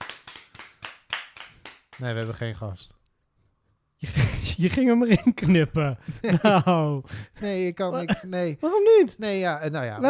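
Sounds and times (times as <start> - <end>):
applause: 0.0 - 2.6
speech: 2.0 - 3.0, 4.6 - 10.0
laughter: 4.0 - 7.0, 8.0 - 8.4.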